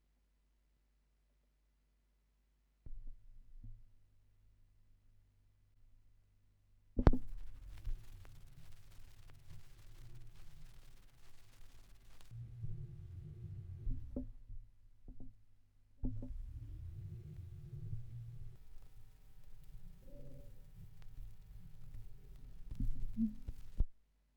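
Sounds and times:
vinyl record noise: 7.0s - 14.2s, 16.2s - 23.9s.

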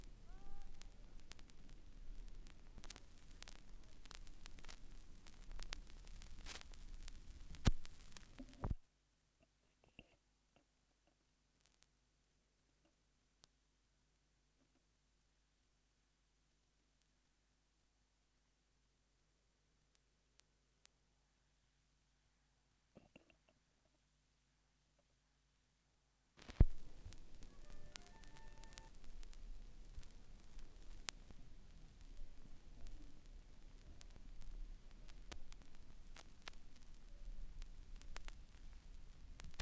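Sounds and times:
vinyl record noise: 0.0s - 8.8s, 26.4s - 39.6s.

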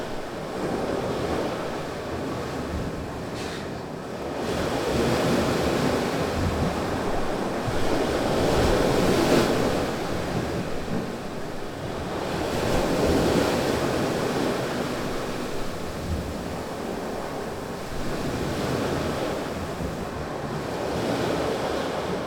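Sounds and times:
waves recorded from a balcony in Curaçao with a Rode NT4: 0.0s - 22.2s.

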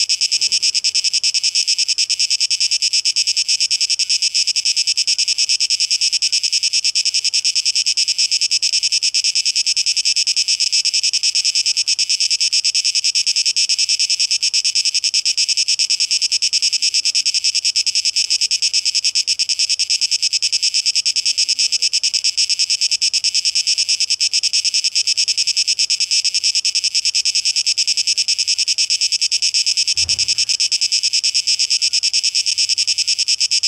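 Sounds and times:
cicadas sizzling pulsing drone: 0.0s - 33.6s
short low bump: 30.0s - 30.7s.

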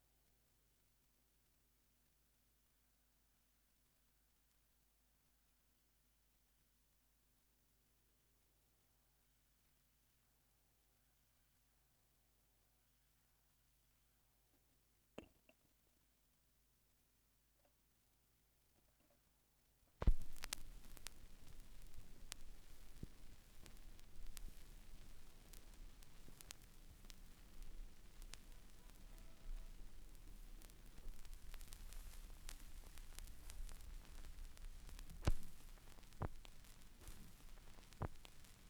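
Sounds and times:
vinyl record noise: 20.0s - 38.6s.

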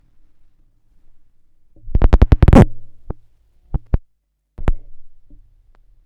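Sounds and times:
vinyl record noise: 1.8s - 4.0s, 4.6s - 5.4s.

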